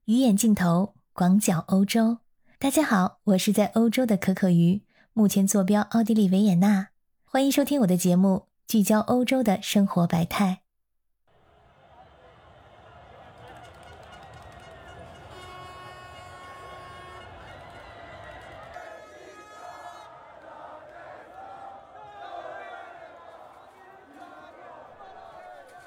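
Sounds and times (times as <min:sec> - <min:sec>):
speech: 0:00.1 - 0:10.6
street crowd cheering after a football victory: 0:11.3 - 0:25.8
sustained horn-like tones: 0:11.6 - 0:20.1.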